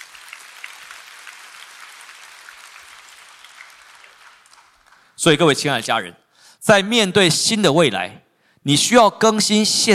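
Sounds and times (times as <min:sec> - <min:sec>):
audience clapping hands: 0:00.0 - 0:05.2
speech: 0:05.2 - 0:09.9.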